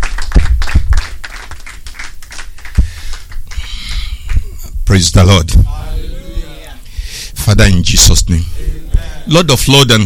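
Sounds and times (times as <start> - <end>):
audience clapping: 0.0 - 4.5
speech: 4.9 - 5.8, 7.5 - 8.7, 9.3 - 10.0.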